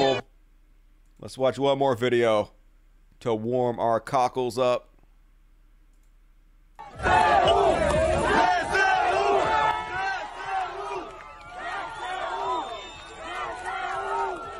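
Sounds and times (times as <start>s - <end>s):
speech: 1.2s - 2.6s, 3.2s - 4.9s
crowd cheering and chanting: 6.8s - 14.5s.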